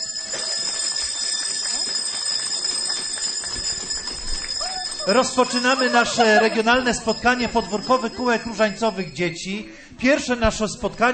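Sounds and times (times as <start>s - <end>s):
group clapping: 0.0s - 8.3s
small handbells jingling: 0.0s - 9.7s
laughter: 4.8s - 9.7s
speech: 5.0s - 11.1s.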